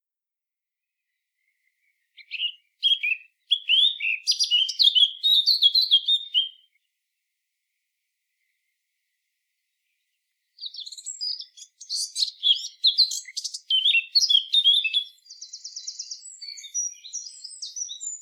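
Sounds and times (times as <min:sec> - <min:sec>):
Eurasian blackcap song: 0:01.0 - 0:07.0, 0:09.6 - 0:18.1.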